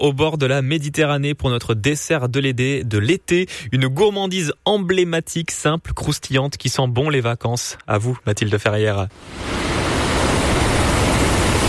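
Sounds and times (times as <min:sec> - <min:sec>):
speech: 0:00.0 - 0:09.9
ocean waves breaking on shore: 0:09.1 - 0:11.6.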